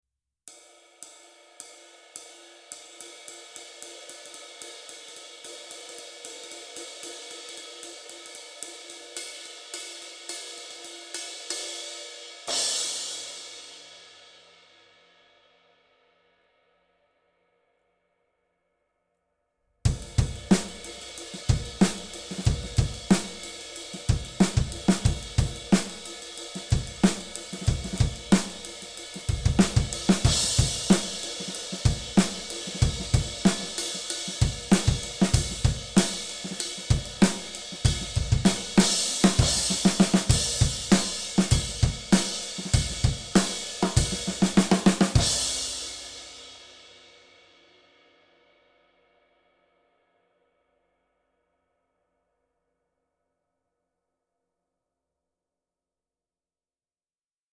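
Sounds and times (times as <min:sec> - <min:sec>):
traditional light ride cymbal: 0:00.5 - 0:15.6, 0:19.9 - 0:48.5.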